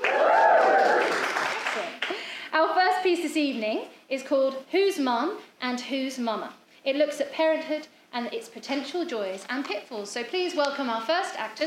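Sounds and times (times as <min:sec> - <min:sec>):
audience cheer and applause: 0:00.0 - 0:02.0
speech: 0:03.1 - 0:11.6.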